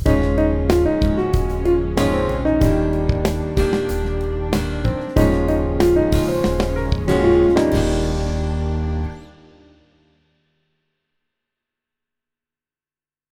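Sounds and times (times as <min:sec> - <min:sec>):
melodic phrase for aural tests: 0:00.2 - 0:09.4.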